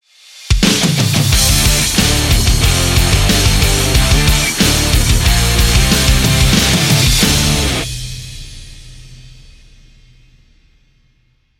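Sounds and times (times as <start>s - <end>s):
rock music intro: 0.4s - 9.4s.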